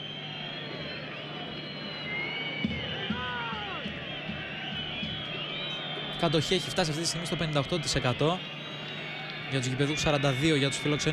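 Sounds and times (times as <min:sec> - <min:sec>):
dense stadium crowd roaring: 0:00.0 - 0:11.1
shrill whistles: 0:00.0 - 0:11.1
scattered shouts: 0:03.0 - 0:04.0
speech: 0:06.2 - 0:08.6, 0:09.5 - 0:11.1.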